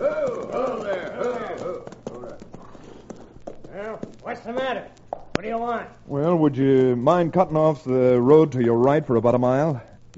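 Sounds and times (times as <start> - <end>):
raised voices calling: 0.0 - 4.9
horses' hooves clopping on a road: 0.0 - 9.0
speech: 4.4 - 9.9.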